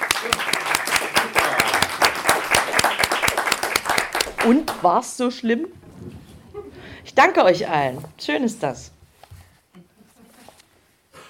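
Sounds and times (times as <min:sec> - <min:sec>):
audience applause: 0:00.0 - 0:04.9
speech: 0:04.4 - 0:06.2, 0:07.2 - 0:08.9.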